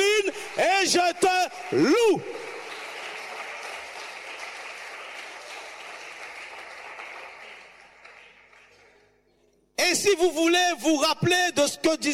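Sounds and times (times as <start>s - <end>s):
audience applause: 0.0s - 8.9s
speech: 0.6s - 2.4s, 10.0s - 12.1s.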